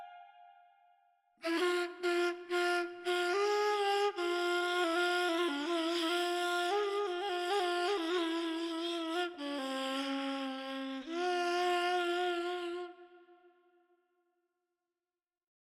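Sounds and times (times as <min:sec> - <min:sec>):
ney flute playing Persian classical radif: 0:01.4 - 0:13.3.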